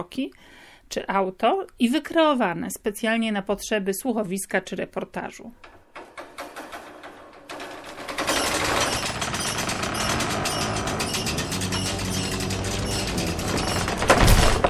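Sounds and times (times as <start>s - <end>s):
speech: 0.0s - 5.8s
drawbridge sound effect with rattling chains and ratcheting gears: 5.9s - 14.6s.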